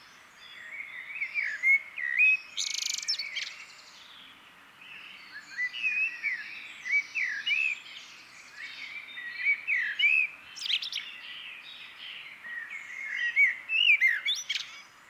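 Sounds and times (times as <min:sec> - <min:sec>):
Eurasian blackbird singing: 0:00.0 - 0:15.0.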